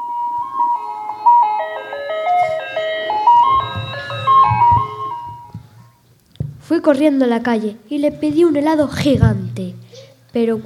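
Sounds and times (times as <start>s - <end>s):
ice cream truck jingle: 0.0s - 6.0s
speech: 6.7s - 10.6s.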